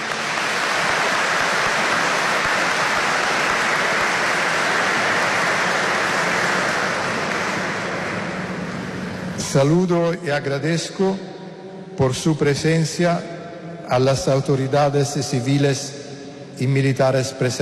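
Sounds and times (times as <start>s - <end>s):
applause: 0.0s - 9.3s
speech: 9.5s - 11.3s, 12.0s - 16.0s, 16.6s - 17.6s.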